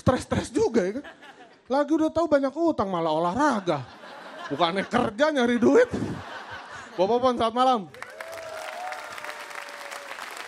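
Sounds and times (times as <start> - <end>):
speech: 0.0 - 6.3, 7.0 - 8.0
laughter: 0.8 - 1.7, 3.4 - 7.4
audience applause at an evening stand-up show: 7.9 - 10.4.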